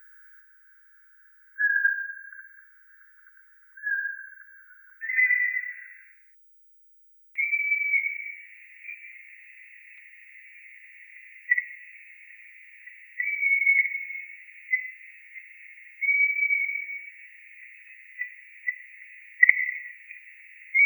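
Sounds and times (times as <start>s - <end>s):
Eurasian pygmy owl whistling: 3.8s - 6.1s, 7.4s - 20.8s.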